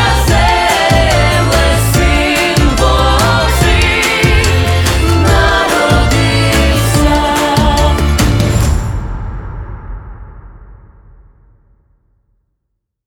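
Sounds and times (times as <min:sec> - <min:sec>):
Ukrainian folk group performing: 0:00.0 - 0:08.8.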